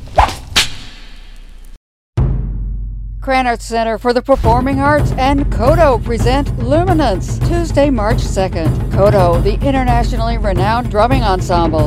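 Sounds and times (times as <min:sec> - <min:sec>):
whip crack sound effect in a radio station ident: 0:00.0 - 0:01.6
speech: 0:03.2 - 0:11.8.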